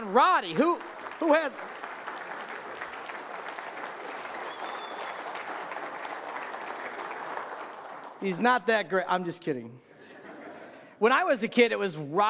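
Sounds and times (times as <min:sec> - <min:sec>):
audience applause for a speaker coming to the stage: 0:00.0 - 0:08.4
speech: 0:00.1 - 0:01.8, 0:08.2 - 0:09.9, 0:11.0 - 0:12.2
laughter: 0:10.0 - 0:11.0.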